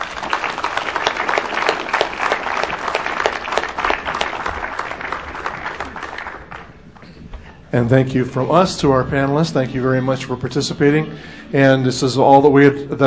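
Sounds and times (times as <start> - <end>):
audience clapping: 0.0 - 7.6
speech: 7.7 - 13.0.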